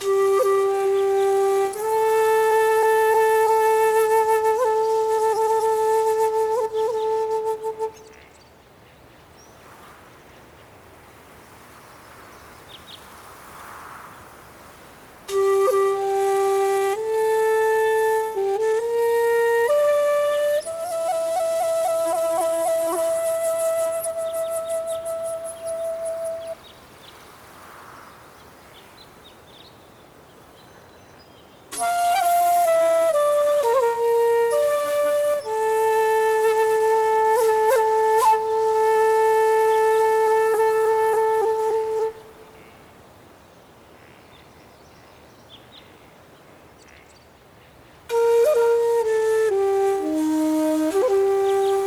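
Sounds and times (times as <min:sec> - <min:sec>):
lone shakuhachi: 0:00.0 - 0:08.3, 0:15.3 - 0:26.6, 0:31.7 - 0:42.7, 0:48.1 - 0:51.8.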